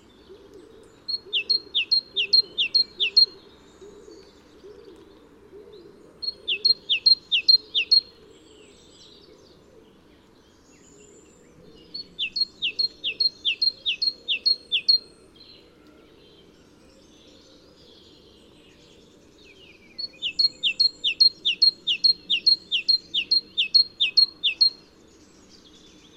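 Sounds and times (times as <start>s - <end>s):
great tit song: 1.1s - 3.3s, 6.2s - 8.0s, 12.0s - 15.0s, 20.0s - 24.8s.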